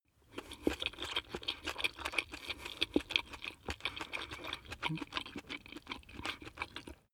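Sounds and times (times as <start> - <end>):
chewing spaghetti fast: 0.1 - 7.1.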